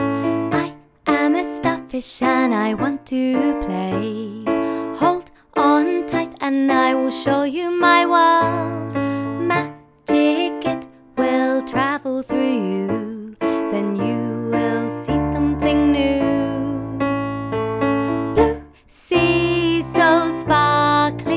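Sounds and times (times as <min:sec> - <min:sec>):
vocals: 0:00.1 - 0:21.3.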